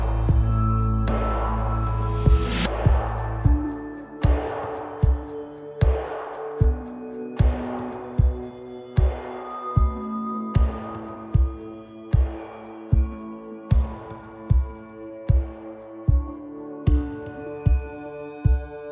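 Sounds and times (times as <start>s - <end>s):
bass: 0.0s - 4.7s
drums: 0.0s - 10.0s, 10.6s - 18.7s.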